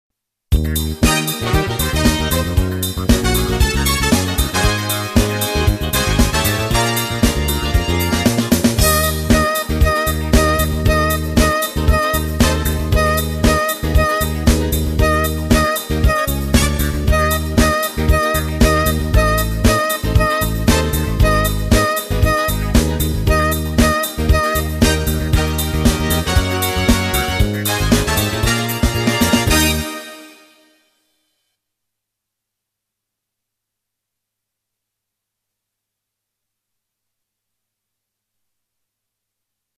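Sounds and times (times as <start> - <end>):
trombone: 0.5 - 30.8
trumpet: 0.7 - 31.3.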